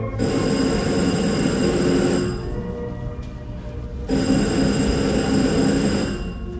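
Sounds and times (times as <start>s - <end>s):
telephone ringing: 0.2s - 2.8s, 4.1s - 6.5s.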